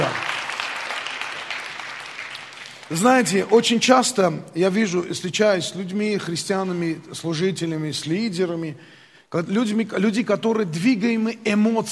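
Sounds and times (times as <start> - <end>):
audience applauding: 0.0 - 3.8
speech: 2.9 - 11.9.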